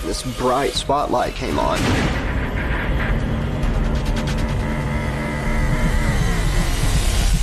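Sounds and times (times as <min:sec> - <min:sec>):
speech: 0:00.2 - 0:02.2
motorboat engine roaring: 0:03.1 - 0:07.4.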